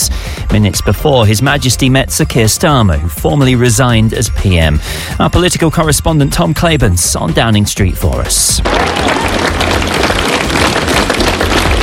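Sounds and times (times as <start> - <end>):
speech: 0.5 - 9.2
applause from crowd in Downing Street: 8.6 - 11.8.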